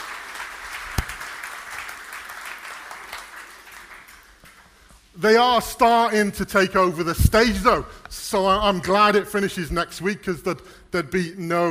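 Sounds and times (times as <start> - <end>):
crowd clapping: 0.0 - 5.1
speech: 5.2 - 11.6.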